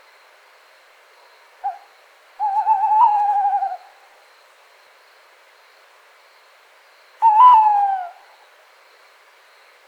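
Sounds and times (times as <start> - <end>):
tawny owl hooting: 1.6 - 4.0, 7.2 - 8.3.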